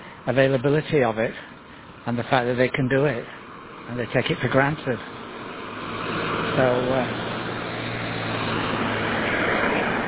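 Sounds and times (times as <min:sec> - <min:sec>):
road traffic rushing past: 0:00.0 - 0:10.0
speech: 0:00.2 - 0:05.2, 0:06.6 - 0:07.2.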